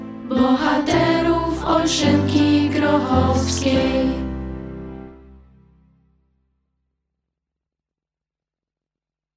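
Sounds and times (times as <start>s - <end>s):
school hymn: 0.0s - 5.4s.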